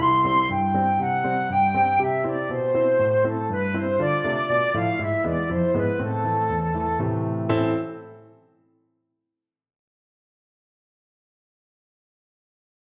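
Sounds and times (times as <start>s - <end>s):
flute: 0.0s - 8.2s.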